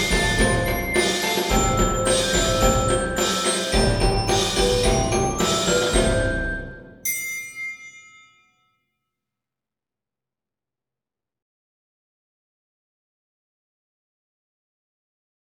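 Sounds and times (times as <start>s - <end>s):
percussion ensemble: 0.0s - 8.0s.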